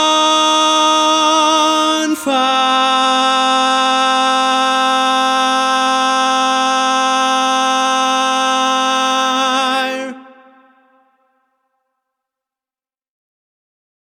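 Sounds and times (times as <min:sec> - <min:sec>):
baritone barbershop tags: 0:00.0 - 0:11.1.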